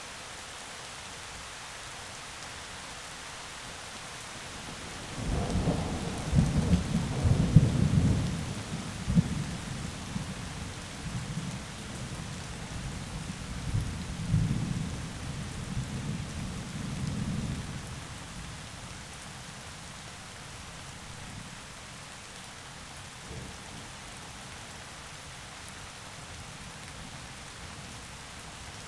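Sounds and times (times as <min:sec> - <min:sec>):
heavy rain in forest: 0:00.1 - 0:28.8
light thunder in forest: 0:04.7 - 0:18.0.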